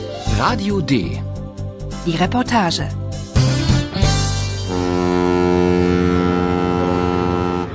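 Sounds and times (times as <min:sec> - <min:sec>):
speech: 0:00.4 - 0:01.3, 0:02.1 - 0:03.5
harbor ambience with ship sounds: 0:04.7 - 0:07.7.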